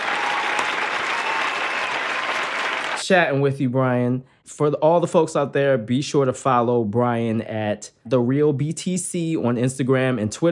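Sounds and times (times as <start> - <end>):
applause from an audience: 0.0 - 3.0
speech: 3.1 - 10.5.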